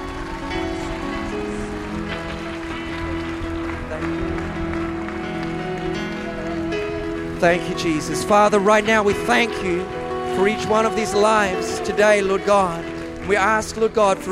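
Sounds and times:
audience clapping: 0:00.0 - 0:14.3
speech: 0:07.4 - 0:14.3.

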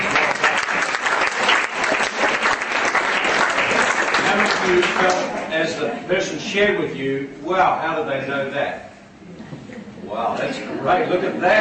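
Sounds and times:
audience clapping: 0:00.0 - 0:05.6
speech: 0:04.7 - 0:09.5, 0:10.1 - 0:11.6.

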